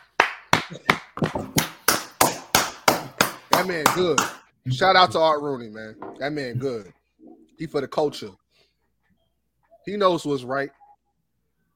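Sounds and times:
person clapping hands: 0.0s - 4.5s
speech: 3.6s - 7.0s, 7.6s - 8.4s, 9.8s - 10.8s.

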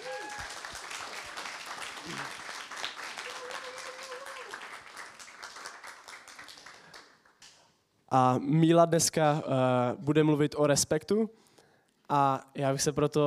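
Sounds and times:
audience applause: 0.0s - 7.3s
speech: 2.0s - 2.4s, 8.1s - 11.4s, 12.1s - 13.2s.

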